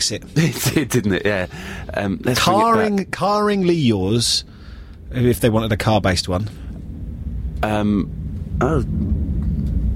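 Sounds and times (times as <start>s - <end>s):
speech: 0.0s - 6.6s, 7.6s - 9.0s
airplane flying: 4.4s - 9.9s.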